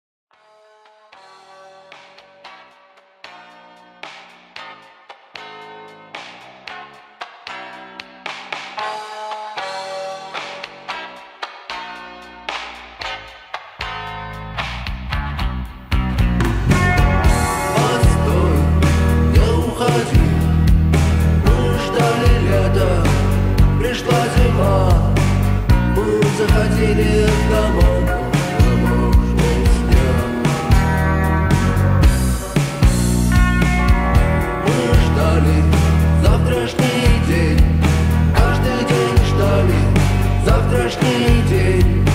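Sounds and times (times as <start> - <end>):
slowed reverb doomerwave music: 15.9 - 42.1.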